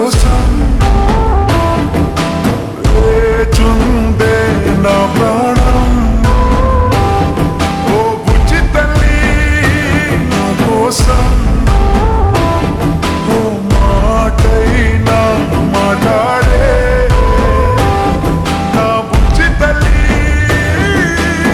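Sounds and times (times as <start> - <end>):
slow reverb Telugu ringtone music: 0.2 - 21.5.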